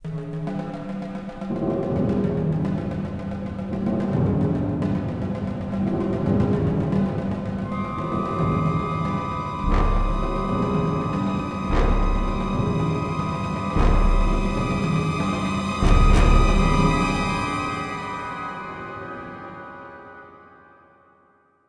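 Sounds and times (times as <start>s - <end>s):
tense music: 0.0s - 20.6s.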